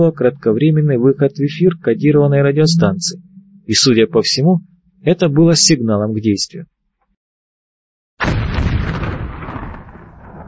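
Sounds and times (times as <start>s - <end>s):
speech: 0.0s - 6.8s
explosion hitting a minibus on the road: 8.2s - 10.4s.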